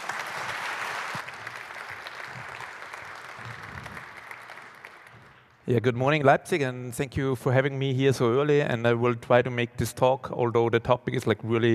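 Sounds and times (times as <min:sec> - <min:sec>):
audience applause: 0:00.0 - 0:05.5
speech: 0:05.7 - 0:11.7.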